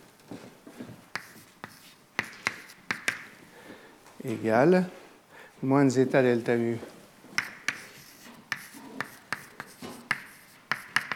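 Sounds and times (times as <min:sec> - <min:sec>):
writing tool tapping and scratching while writing out a result during a physics lecture: 0:01.1 - 0:03.4, 0:07.4 - 0:11.1
speech: 0:04.2 - 0:05.0, 0:05.6 - 0:06.9.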